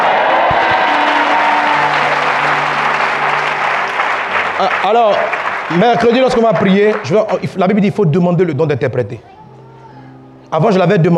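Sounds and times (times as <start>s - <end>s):
church congregation applauding in acclaim: 0.0s - 8.0s
speech: 4.6s - 9.3s, 10.5s - 11.1s.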